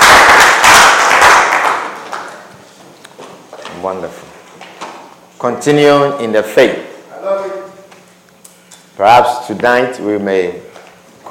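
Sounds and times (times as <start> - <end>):
audience clapping hands: 0.0 - 2.7
speech: 3.8 - 4.4, 5.4 - 6.9, 9.0 - 10.7.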